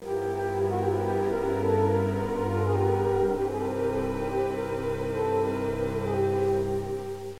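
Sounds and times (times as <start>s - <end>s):
music: 0.0s - 7.3s.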